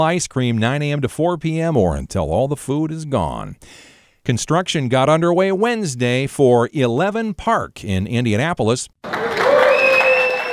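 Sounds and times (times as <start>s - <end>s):
speech: 0.0s - 9.4s
applause at groundbreaking of 11 Park stadium in Indianapolis: 9.0s - 10.5s.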